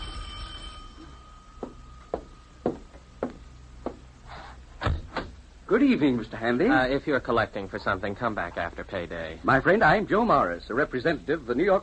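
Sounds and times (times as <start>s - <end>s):
doorbell ringing: 0.0s - 2.6s
speech: 5.7s - 11.8s.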